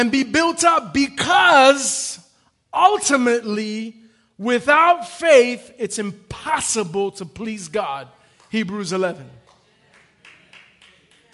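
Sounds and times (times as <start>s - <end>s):
speech: 0.0s - 9.4s
one person clapping: 9.4s - 11.3s.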